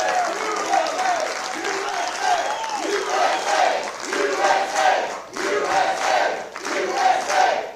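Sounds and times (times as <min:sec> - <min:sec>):
crowd cheering and whooping: 0:00.0 - 0:03.9
crowd applauding: 0:00.0 - 0:07.5.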